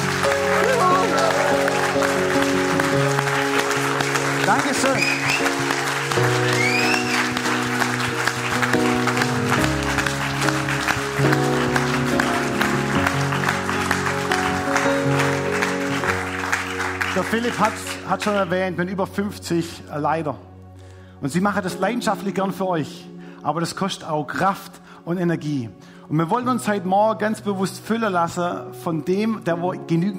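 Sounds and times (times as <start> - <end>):
audience clapping and cheering: 0.0 - 18.6
speech: 4.8 - 5.5, 17.3 - 20.5, 21.2 - 30.1.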